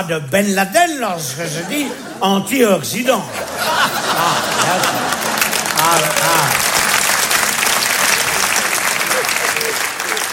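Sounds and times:
speech: 0.0 - 6.7
laughter: 1.2 - 10.3
audience applause during a lecture: 3.4 - 10.3.

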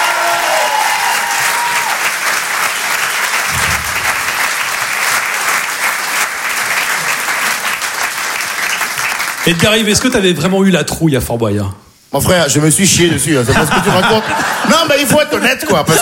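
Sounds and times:
audience applauding loudly: 0.0 - 10.2
speech: 9.5 - 16.0
laughter: 13.4 - 16.0.

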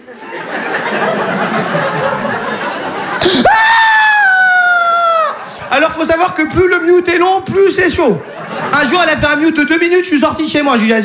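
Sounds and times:
crowd laughing: 0.0 - 10.0
voice imitating a baby's screaming cry: 3.2 - 5.5
speech: 6.2 - 11.0.

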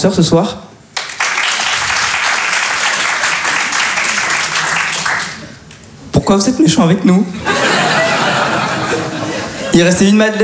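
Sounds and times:
speech: 0.0 - 0.6, 6.3 - 7.6, 9.8 - 10.4
audience applause: 1.0 - 5.6
laughter: 7.4 - 9.8.

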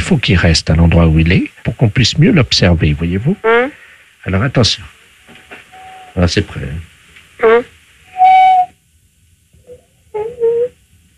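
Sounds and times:
speech: 0.1 - 4.9, 6.2 - 7.7
parrot whistling over a phone line: 5.7 - 6.2, 7.4 - 8.8, 9.6 - 10.8.

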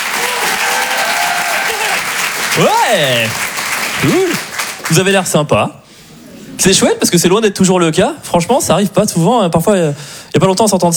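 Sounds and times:
audience applause at the Apollo Théâtre during a live comedy and song show: 0.0 - 5.2
speech: 2.6 - 5.8, 6.6 - 10.9.

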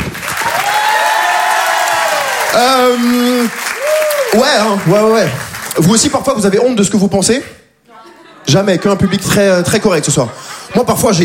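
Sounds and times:
audience applauding: 0.0 - 6.2
speech: 2.6 - 3.6, 4.3 - 7.6, 8.5 - 11.2
laughter: 7.9 - 10.9.

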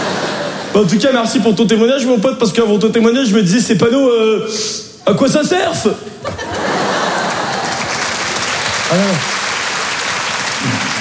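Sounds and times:
laughter: 0.0 - 0.9, 6.1 - 9.2
speech: 0.8 - 6.5, 8.9 - 9.3
audience applause: 6.5 - 10.9.

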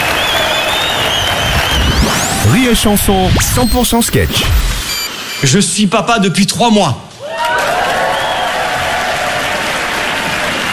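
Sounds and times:
audience applause: 0.0 - 2.4, 7.2 - 10.7
speech: 2.6 - 4.6, 5.4 - 7.0.

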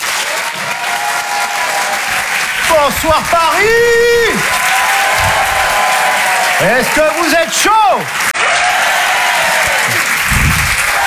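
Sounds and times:
comedy club audience applauding in Paris: 0.0 - 11.0
speech: 2.7 - 4.7, 6.6 - 8.3.

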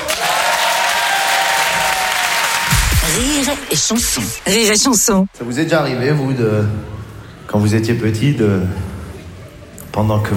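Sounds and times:
audience applause: 0.0 - 5.2
speech: 3.1 - 8.9, 10.0 - 10.3.

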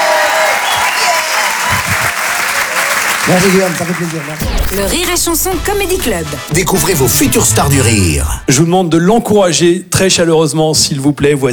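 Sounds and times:
audience applause: 0.0 - 4.5
speech: 3.3 - 11.5.

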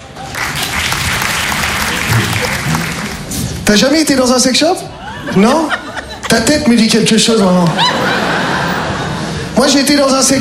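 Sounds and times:
audience applause: 0.0 - 3.5
speech: 3.7 - 8.4, 9.6 - 10.3
laughter: 4.9 - 9.8.

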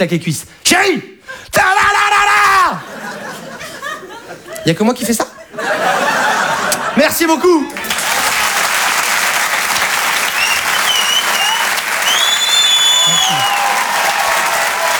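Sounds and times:
speech: 0.0 - 2.1, 4.6 - 7.8
laughter: 2.5 - 12.0, 13.0 - 14.9
audience applause at comedy show: 7.7 - 14.9
whistles and cheers: 7.8 - 14.9.

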